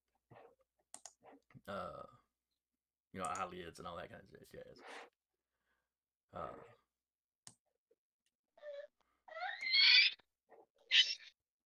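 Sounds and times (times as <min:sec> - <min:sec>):
speech: 0:01.6 - 0:02.2, 0:03.1 - 0:05.1, 0:06.3 - 0:06.8
baby squealing: 0:08.6 - 0:10.2, 0:10.9 - 0:11.3.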